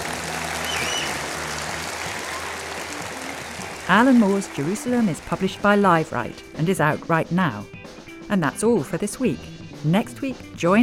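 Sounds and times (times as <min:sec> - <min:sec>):
clapping: 0:00.0 - 0:05.4
speech: 0:03.9 - 0:10.8.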